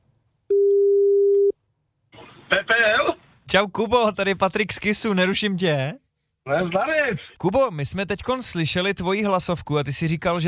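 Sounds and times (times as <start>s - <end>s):
phone ringback tone beep: 0.5s - 1.5s
speech: 2.5s - 10.4s.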